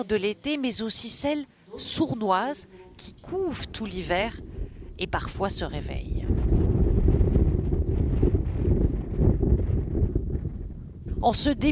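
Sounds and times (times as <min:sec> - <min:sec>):
speech: 0:00.0 - 0:06.2, 0:11.2 - 0:11.7
strong icy wind blowing: 0:02.9 - 0:11.7.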